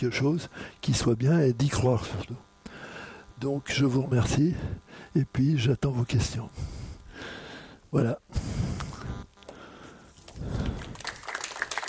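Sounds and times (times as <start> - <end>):
speech: 0.0 - 2.5, 3.4 - 6.8, 7.9 - 8.6
audience applauding: 10.3 - 11.8.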